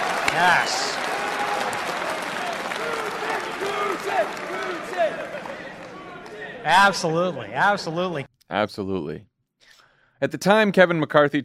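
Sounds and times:
audience applause: 0.0s - 7.3s
people cheering and shouting: 0.0s - 8.2s
speech: 0.4s - 1.0s, 3.6s - 5.8s, 6.6s - 9.3s, 10.2s - 11.4s.

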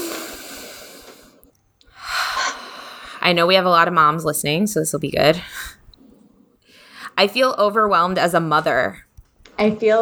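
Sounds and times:
deep breath: 0.0s - 3.8s, 5.2s - 7.8s
speech: 3.3s - 5.8s, 7.2s - 9.0s, 9.6s - 10.0s.

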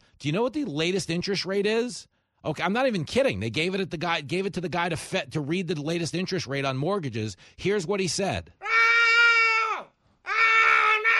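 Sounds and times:
speech: 0.2s - 8.8s
person screaming: 8.6s - 11.1s.

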